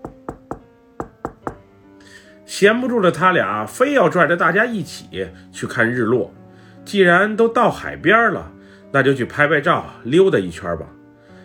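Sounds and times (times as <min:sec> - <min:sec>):
urgent knocking on a door: 0:00.0 - 0:01.7
speech: 0:02.5 - 0:11.0.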